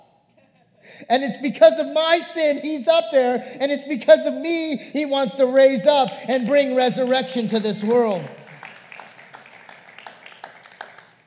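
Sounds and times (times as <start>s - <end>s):
speech: 1.0s - 8.4s
audience clapping: 5.6s - 11.2s.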